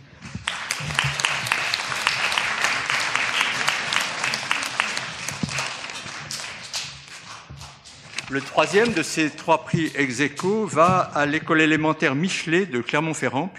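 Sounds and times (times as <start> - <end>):
audience applause: 0.4 - 7.2
speech: 8.3 - 13.5.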